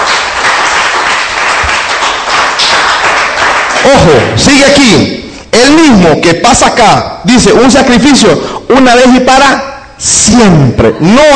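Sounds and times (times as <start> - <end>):
audience clapping hands: 0.0 - 4.7
speech: 3.9 - 11.3.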